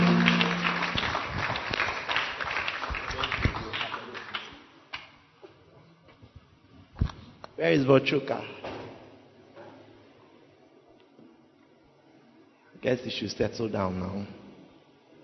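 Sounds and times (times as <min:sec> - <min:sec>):
weak audience clapping: 0:00.0 - 0:05.2
speech: 0:07.6 - 0:08.6, 0:12.8 - 0:14.4.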